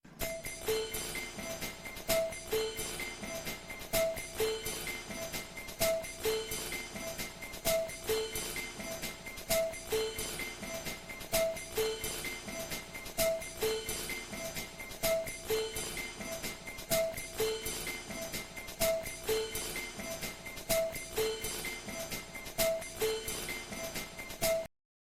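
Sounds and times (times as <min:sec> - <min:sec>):
music: 0:00.0 - 0:24.7
clock ticking: 0:00.1 - 0:24.7.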